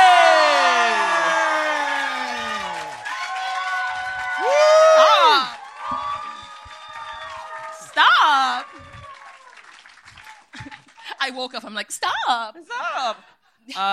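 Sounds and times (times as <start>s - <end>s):
audience applause: 0.0s - 11.1s
speech: 11.4s - 13.9s.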